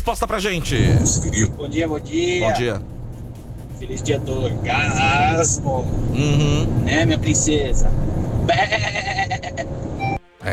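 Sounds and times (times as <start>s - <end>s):
speech: 0.0s - 3.0s, 3.8s - 9.2s
goat bleating: 6.1s - 6.8s.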